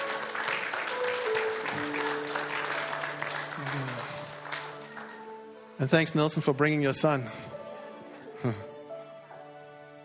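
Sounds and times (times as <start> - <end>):
audience clapping for worship team: 0.0 - 5.7
speech: 5.8 - 7.5, 8.4 - 8.7.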